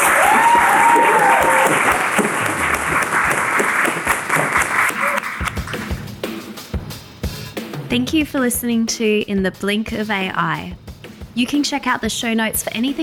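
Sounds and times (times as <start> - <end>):
whoop or whistle: 0.0 - 2.0
audience applause: 0.0 - 6.0
speech: 7.9 - 10.8, 11.4 - 13.0.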